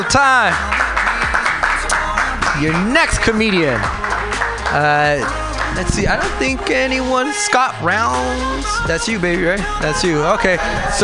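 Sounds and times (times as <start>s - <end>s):
speech: 0.0s - 0.8s, 2.6s - 11.0s
crowd clapping: 0.0s - 7.3s.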